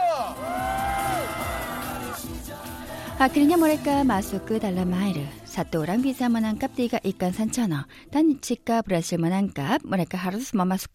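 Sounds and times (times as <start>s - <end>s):
crowd cheering and whooping: 0.0s - 2.2s
person letting out a long rising and falling shout: 0.0s - 2.2s
speech: 3.2s - 10.9s.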